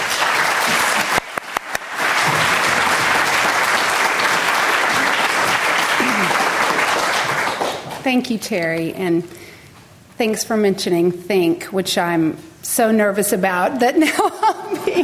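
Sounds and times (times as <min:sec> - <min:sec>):
audience applauding to welcome a guest speaker: 0:00.0 - 0:08.0
speech: 0:08.1 - 0:09.4, 0:10.2 - 0:15.0.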